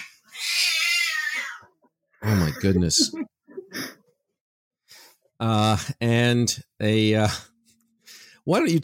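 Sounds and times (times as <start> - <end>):
cats meowing and caterwauling: 0.0 - 1.8
speech: 2.3 - 3.3, 5.4 - 7.5, 8.5 - 8.8.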